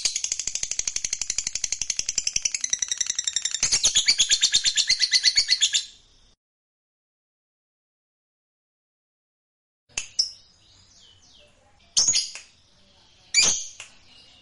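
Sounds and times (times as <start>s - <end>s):
fighter lovebird singing with clicks and shrill buzzy trill: 0.0s - 6.4s, 10.1s - 14.4s.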